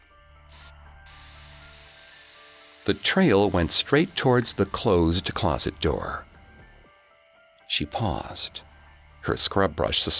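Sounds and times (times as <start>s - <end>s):
carpet cleaner spray: 0.5s - 6.1s
speech: 2.9s - 6.3s, 7.7s - 10.1s.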